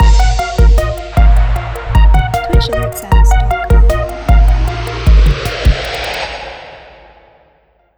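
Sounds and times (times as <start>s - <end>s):
trap music: 0.0s - 6.2s.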